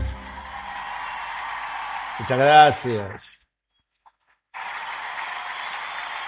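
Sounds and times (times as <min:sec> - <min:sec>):
crowd applause: 0:00.1 - 0:03.2, 0:04.5 - 0:06.2
speech: 0:02.3 - 0:03.4.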